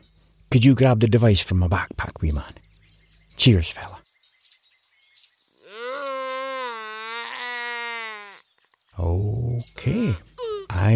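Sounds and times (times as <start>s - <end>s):
faint little chirps: 0.0s - 10.9s
speech: 0.5s - 2.6s, 3.4s - 4.0s, 9.0s - 10.9s
creature wailing cry: 5.6s - 8.4s.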